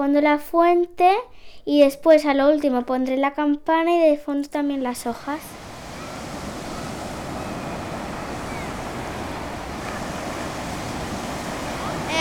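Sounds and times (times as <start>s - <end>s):
speech: 0.0s - 5.6s
sea waves: 5.2s - 12.2s.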